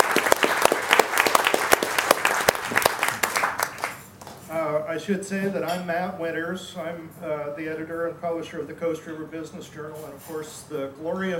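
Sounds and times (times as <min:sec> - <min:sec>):
audience applause for restaurant crew: 0:00.0 - 0:04.4
speech: 0:05.0 - 0:11.3.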